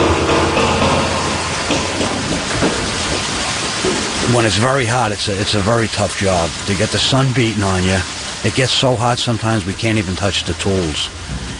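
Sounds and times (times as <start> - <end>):
water pouring into a storage tank: 0.0 - 11.5
speech: 4.3 - 11.4.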